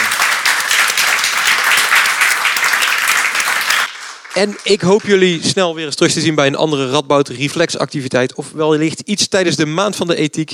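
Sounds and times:
audience applause: 0:00.0 - 0:05.4
speech: 0:04.4 - 0:10.5.

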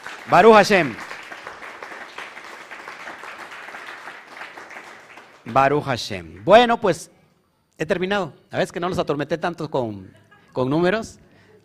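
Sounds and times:
audience applause: 0:00.0 - 0:05.7
speech: 0:00.2 - 0:01.1, 0:05.5 - 0:07.2, 0:07.8 - 0:11.6.

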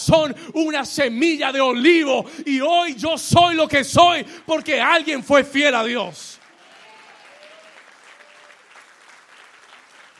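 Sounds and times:
speech: 0:00.0 - 0:06.4
audience applause: 0:06.4 - 0:10.1.

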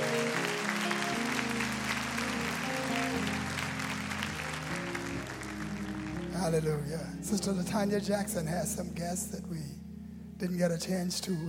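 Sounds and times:
audience applause: 0:00.0 - 0:06.7
speech: 0:06.5 - 0:09.8, 0:10.4 - 0:11.4.

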